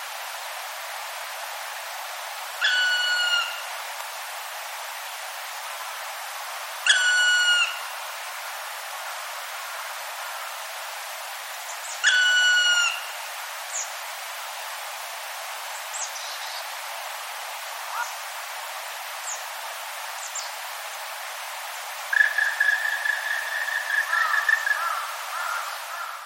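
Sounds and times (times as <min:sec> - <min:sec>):
low continuous hiss: 0:00.0 - 0:26.2
Black Woodpecker ringing call: 0:02.6 - 0:03.6, 0:06.9 - 0:07.8, 0:12.0 - 0:13.0, 0:22.1 - 0:26.1.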